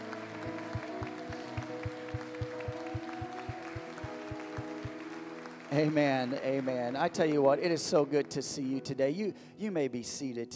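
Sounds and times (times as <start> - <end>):
audience hand clapping: 0.0 - 8.0
speech: 5.8 - 10.5.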